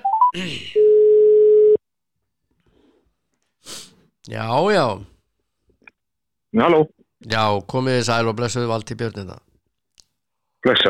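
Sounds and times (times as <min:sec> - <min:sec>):
telephone tone on an outgoing call: 0:00.0 - 0:01.8
speech: 0:00.4 - 0:00.8, 0:04.3 - 0:05.1, 0:06.5 - 0:09.4, 0:10.6 - 0:10.8.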